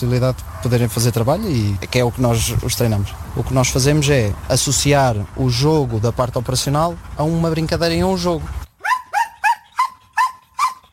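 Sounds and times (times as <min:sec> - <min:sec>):
speech: 0:00.0 - 0:08.6
trained working dog barking: 0:00.5 - 0:00.8, 0:08.8 - 0:10.9.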